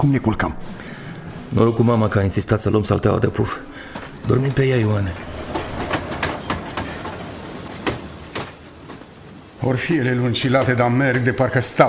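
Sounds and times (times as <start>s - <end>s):
speech: 0.0s - 0.8s, 1.5s - 5.3s, 9.6s - 11.8s
train wagons rolling on rails: 2.5s - 11.8s
wheels clacking over track joints: 3.9s - 11.8s.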